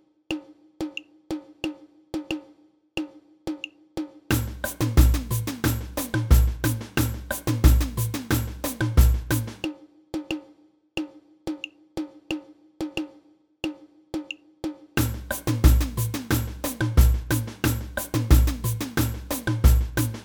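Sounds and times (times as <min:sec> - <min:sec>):
repinique drum in a samba band: 0:00.3 - 0:20.2
samba band playing samba: 0:04.3 - 0:09.7, 0:15.0 - 0:20.2.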